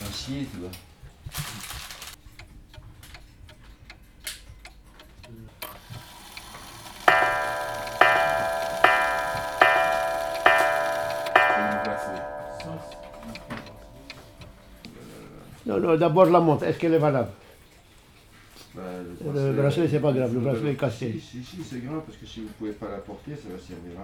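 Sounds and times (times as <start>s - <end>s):
speech: 0.3s - 1.7s, 15.8s - 17.4s, 18.8s - 24.0s
cuckoo clock ticking: 2.1s - 15.8s
cuckoo clock ringing chime tones: 5.8s - 15.2s.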